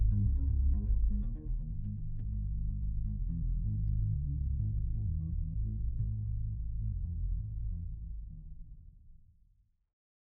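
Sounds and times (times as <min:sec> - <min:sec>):
bass noise: 0:00.0 - 0:08.2.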